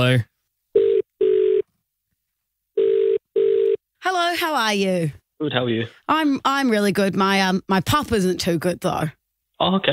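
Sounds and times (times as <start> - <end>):
speech: 0.0 - 0.3, 4.1 - 9.9
telephone call ringback tone: 0.8 - 1.6, 2.8 - 3.8.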